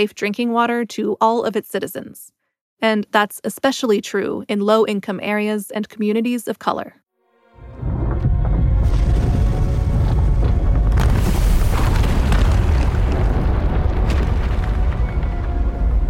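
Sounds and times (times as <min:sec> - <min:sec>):
speech: 0:00.0 - 0:07.0
crackling bursts: 0:07.8 - 0:16.0
volcanic eruption rumble: 0:07.8 - 0:16.0.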